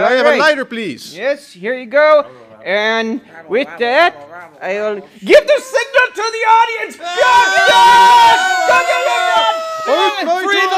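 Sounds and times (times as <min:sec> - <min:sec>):
speech: 0:00.1 - 0:10.7
rioting crowd yelling and whooping: 0:07.0 - 0:10.7.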